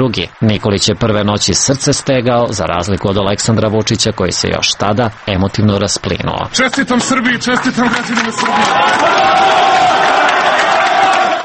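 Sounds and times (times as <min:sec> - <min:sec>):
speech: 0:00.0 - 0:10.0
crowd cheering at an election victory celebration in Serbia: 0:06.6 - 0:11.4.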